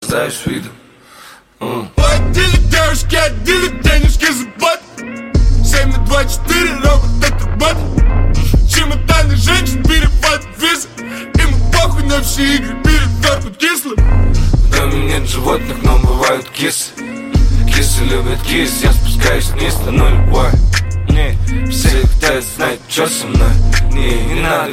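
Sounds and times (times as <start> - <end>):
Russian song: 2.0 - 24.7.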